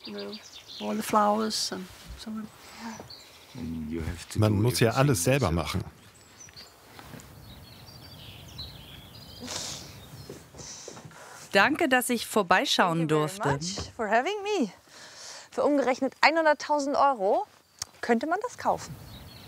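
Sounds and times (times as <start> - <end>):
speech: 0.0 - 6.0, 11.6 - 14.8, 15.6 - 17.5, 18.1 - 19.1
birds singing: 0.0 - 11.9, 13.5 - 19.4.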